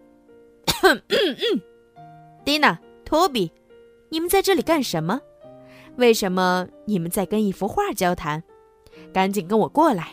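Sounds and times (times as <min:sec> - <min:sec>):
forceful throat clearing: 0:00.7 - 0:01.6
speech: 0:00.8 - 0:01.7, 0:02.4 - 0:05.3, 0:06.0 - 0:08.5, 0:09.1 - 0:10.1.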